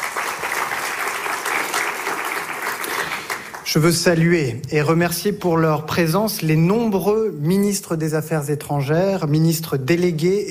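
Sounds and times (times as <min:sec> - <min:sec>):
audience applause from a large audience: 0:00.0 - 0:03.8
speech: 0:03.7 - 0:10.4.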